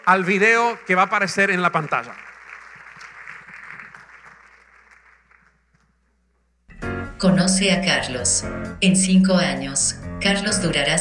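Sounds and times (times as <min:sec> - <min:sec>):
speech: 0:00.0 - 0:02.3, 0:07.2 - 0:10.9
crowd applauding: 0:00.0 - 0:06.0.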